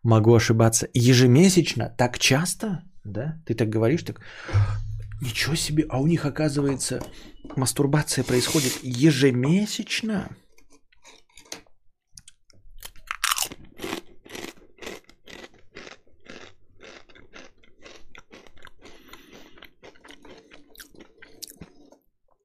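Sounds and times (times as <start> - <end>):
speech: 0.0 - 10.4
person crunching a hard candy: 12.2 - 22.0.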